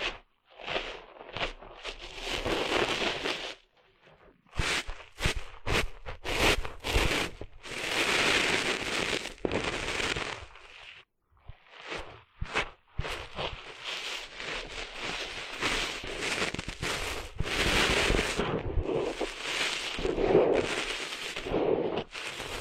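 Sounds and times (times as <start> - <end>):
beach sand rustling and scraping: 0.0 - 3.6, 4.6 - 11.0, 11.7 - 22.5.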